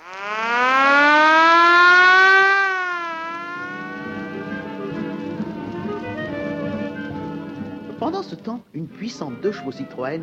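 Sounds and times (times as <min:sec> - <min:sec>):
alarm siren wailing: 0:00.0 - 0:08.0
speech: 0:08.4 - 0:10.2.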